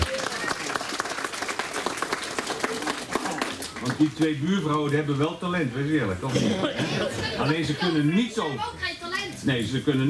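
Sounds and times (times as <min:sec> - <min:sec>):
crowd applauding: 0:00.0 - 0:04.4
speech: 0:03.8 - 0:10.0.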